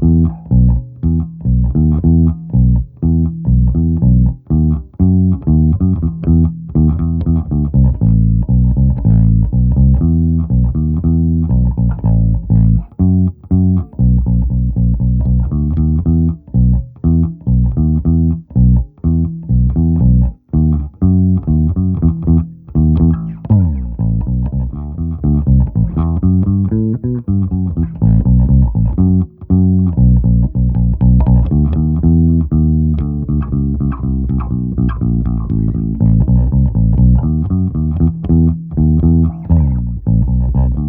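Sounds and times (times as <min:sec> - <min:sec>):
bass pshik at 120: 0:00.0 - 0:40.8.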